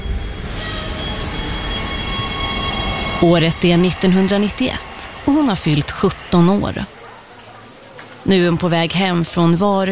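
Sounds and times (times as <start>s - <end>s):
subway train in a station: 0.0s - 9.8s
speech: 3.2s - 7.0s, 8.2s - 9.8s.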